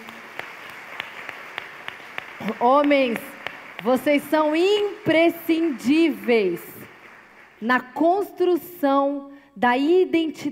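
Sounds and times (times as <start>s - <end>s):
audience applauding: 0.0s - 7.6s
speech: 2.4s - 6.8s, 7.6s - 10.5s.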